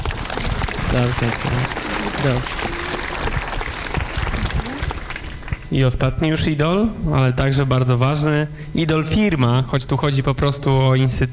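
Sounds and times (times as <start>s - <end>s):
applause: 0.0s - 5.8s
speech: 0.9s - 2.8s, 5.7s - 11.3s.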